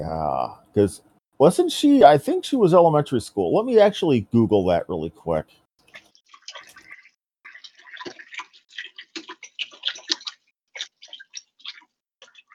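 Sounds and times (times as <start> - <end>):
speech: 0.0 - 5.6
hands washed under running water: 5.9 - 12.5.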